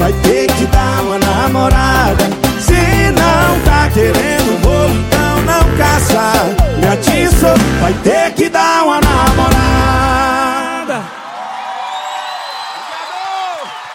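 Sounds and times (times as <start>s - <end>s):
sertanejo music: 0.0s - 10.8s
rodeo announcers speaking: 2.7s - 8.2s.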